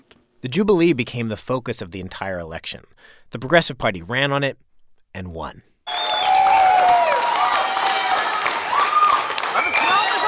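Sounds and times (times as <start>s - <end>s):
speech: 0.4s - 6.0s
excited voices and scattered cheers: 5.9s - 10.2s
supporters clapping in unison at election party: 5.9s - 10.2s.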